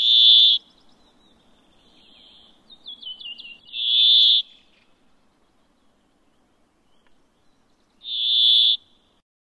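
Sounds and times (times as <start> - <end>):
brambling calls: 0.0 - 0.7, 1.8 - 4.9, 8.0 - 8.9.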